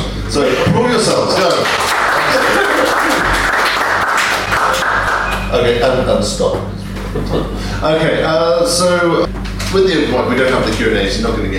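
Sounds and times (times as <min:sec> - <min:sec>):
speech: 0:00.3 - 0:03.0, 0:05.5 - 0:11.5
audience applause: 0:01.3 - 0:05.5
laughter: 0:01.5 - 0:04.8, 0:06.9 - 0:07.8.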